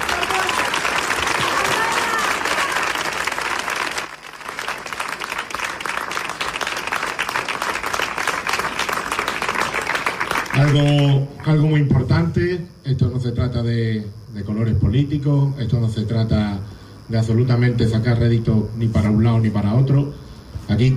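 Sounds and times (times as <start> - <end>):
loud applause: 0.0 - 11.6
speech: 10.7 - 20.9.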